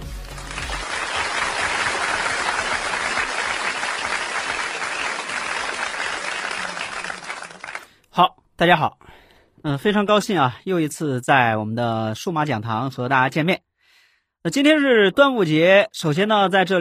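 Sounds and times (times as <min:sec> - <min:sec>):
crowd applause: 0:00.0 - 0:07.9
speech: 0:08.2 - 0:13.7, 0:14.4 - 0:16.7.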